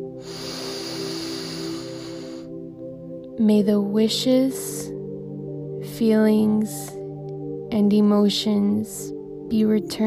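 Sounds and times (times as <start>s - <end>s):
slow steady inhalation: 0.1s - 2.6s
speech: 3.4s - 5.0s, 6.0s - 7.0s, 7.7s - 10.0s.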